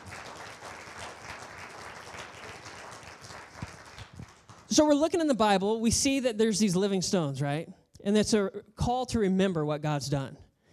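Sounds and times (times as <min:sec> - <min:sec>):
audience applause: 0:00.0 - 0:04.7
speech: 0:04.8 - 0:10.4.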